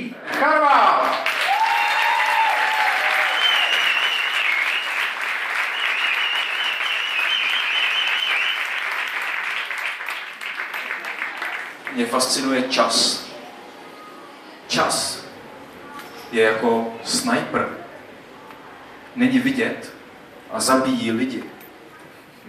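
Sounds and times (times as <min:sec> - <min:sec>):
audience applause: 0:00.3 - 0:12.6
speech: 0:00.4 - 0:00.8, 0:12.0 - 0:13.2, 0:16.3 - 0:17.8, 0:19.2 - 0:19.9, 0:20.5 - 0:21.6.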